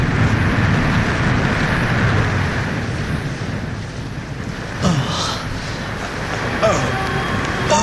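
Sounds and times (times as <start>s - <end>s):
ocean waves crashing against half-destroyed airplane fuselage: 0.0s - 7.8s
person moaning: 6.6s - 7.8s.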